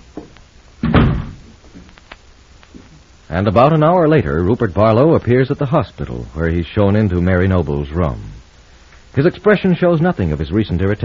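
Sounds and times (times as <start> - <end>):
door thudding shut: 0.8 - 1.5
speech: 3.3 - 8.4, 9.2 - 11.0.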